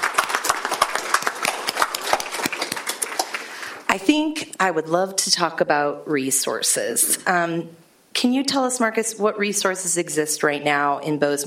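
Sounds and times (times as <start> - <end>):
audience applause: 0.0 - 3.6
speech: 3.9 - 11.4.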